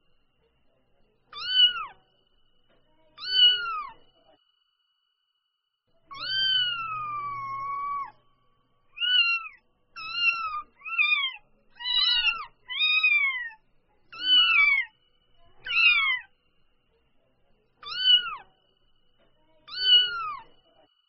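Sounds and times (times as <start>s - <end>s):
domestic cat kitten mewing: 1.4s - 2.0s, 3.2s - 4.0s, 6.1s - 8.2s, 9.0s - 14.9s, 15.6s - 16.3s, 17.8s - 18.4s, 19.7s - 20.4s.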